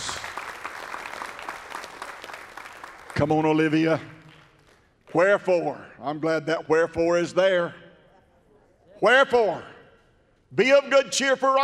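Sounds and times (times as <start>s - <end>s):
audience hand clap of praise: 0.0s - 5.3s
speech: 3.2s - 4.2s, 5.1s - 7.8s, 9.0s - 9.7s, 10.5s - 11.6s.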